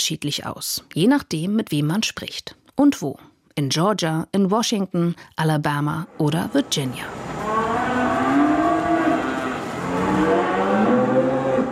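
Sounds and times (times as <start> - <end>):
speech: 0.0 - 7.3
herd of cattle with calves mooing in a new open barn on a Virginia farm: 7.1 - 11.7.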